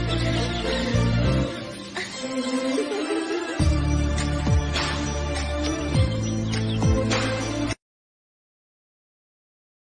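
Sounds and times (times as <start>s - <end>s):
movie background music ringtone: 0.0s - 7.8s.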